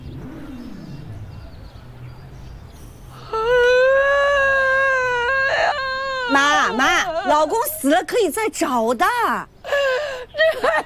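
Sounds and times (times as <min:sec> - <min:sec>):
woman crying: 0:03.2 - 0:08.0, 0:09.6 - 0:10.8
speech: 0:07.8 - 0:09.6.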